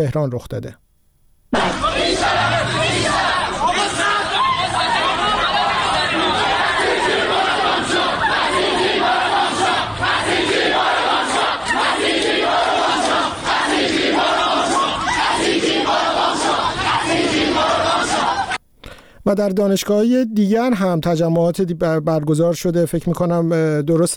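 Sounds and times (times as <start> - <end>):
speech: 0.0 - 0.8, 19.2 - 24.1
crowd of students shouting slogans during clashes at Amirkabir University in Tehran: 1.6 - 18.6.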